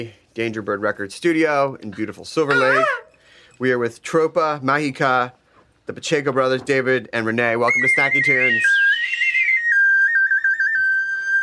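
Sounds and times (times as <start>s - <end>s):
speech: 0.0s - 3.0s, 3.6s - 8.8s
person whistling: 7.7s - 11.4s.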